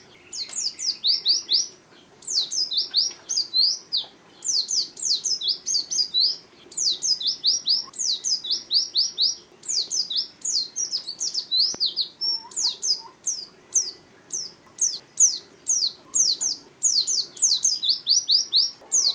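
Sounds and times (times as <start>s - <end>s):
pleci bird calling: 0.0s - 19.1s.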